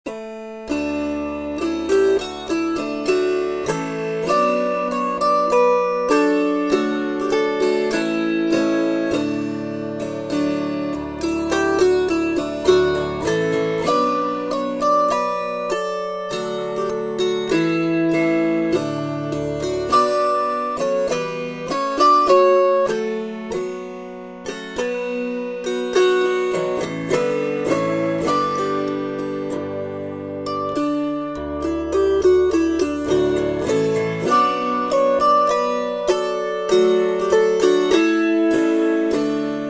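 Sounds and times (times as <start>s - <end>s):
harp: 0.1s - 39.6s.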